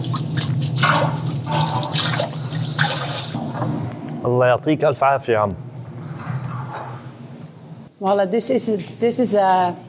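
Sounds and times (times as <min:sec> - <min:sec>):
water from a tap splashing at a tahini shop in an old city: 0:00.1 - 0:03.4
speech: 0:04.3 - 0:05.7, 0:08.0 - 0:09.8.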